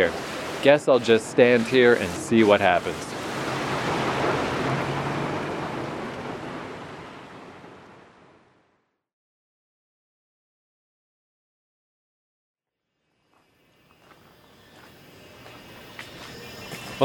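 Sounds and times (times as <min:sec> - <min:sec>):
heavy rain: 0:00.0 - 0:00.8, 0:01.7 - 0:08.5
speech: 0:00.0 - 0:03.1.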